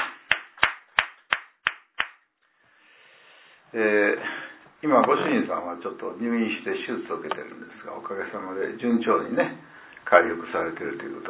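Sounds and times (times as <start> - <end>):
audience applause for a birthday: 0.0 - 2.3
speech: 3.7 - 11.2.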